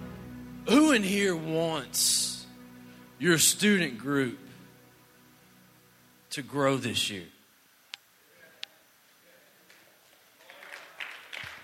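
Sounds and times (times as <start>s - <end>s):
speech: 0.7s - 2.3s, 3.2s - 4.5s, 6.3s - 7.4s
audience clapping: 9.6s - 11.6s.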